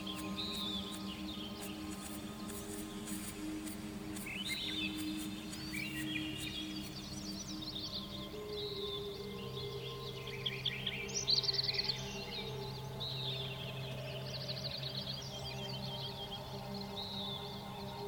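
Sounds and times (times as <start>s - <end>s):
forest clearing ambience: 0.0s - 18.0s.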